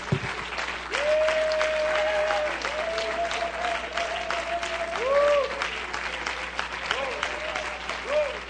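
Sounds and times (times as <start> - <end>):
audience clapping hands in praise: 0.0 - 8.4.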